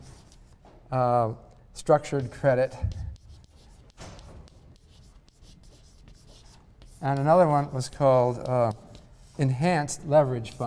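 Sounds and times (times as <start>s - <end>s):
speech: 0.9s - 3.0s, 7.0s - 10.6s
pen scratching while writing: 2.9s - 9.4s.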